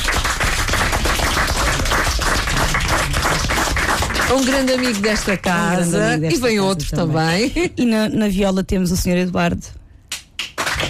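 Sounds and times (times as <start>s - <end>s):
audience applause: 0.0s - 6.0s, 10.5s - 10.8s
speech: 4.3s - 9.8s.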